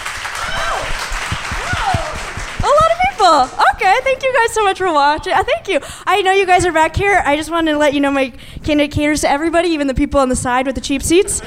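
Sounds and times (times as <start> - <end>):
audience clapping: 0.0 - 4.1
speech: 3.3 - 11.4.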